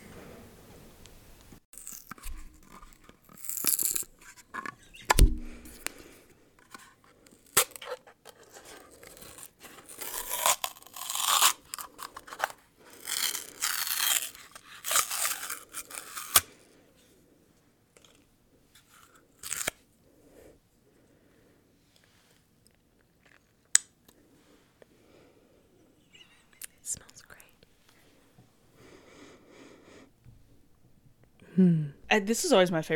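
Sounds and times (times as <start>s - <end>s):
tearing bursts: 1.8s - 4.3s, 8.8s - 16.6s, 19.0s - 19.8s
sharp clicks and pops: 1.8s - 6.0s
jar of almond butter opening with crinkly crackles: 1.8s - 16.5s, 18.9s - 19.8s
speech: 31.6s - 32.9s.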